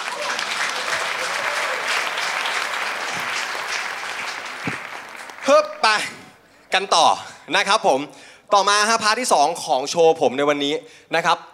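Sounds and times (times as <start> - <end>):
audience applause: 0.0 - 6.4
speech: 5.5 - 6.1, 6.8 - 11.5.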